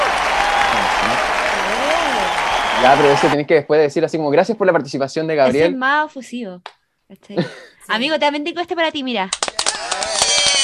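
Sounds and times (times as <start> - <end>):
ovation applause sound effect of many hands clapping: 0.0 - 3.4, 9.3 - 10.6
speech: 2.8 - 9.4.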